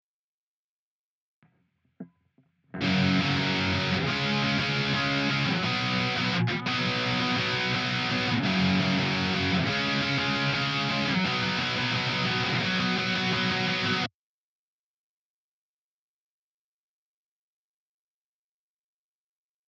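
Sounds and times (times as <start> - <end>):
guitar: 2.0 - 14.1.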